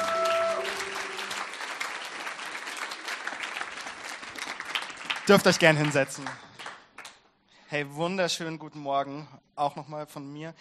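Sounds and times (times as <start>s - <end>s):
audience applause: 0.0s - 7.2s
speech: 5.3s - 6.5s, 7.7s - 10.6s.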